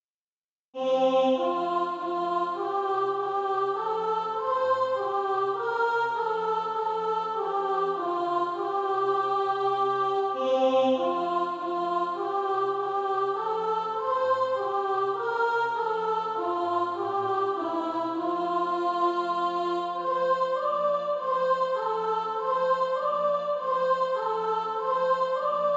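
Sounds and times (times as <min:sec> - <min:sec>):
soprano singing: 0:00.8 - 0:25.7.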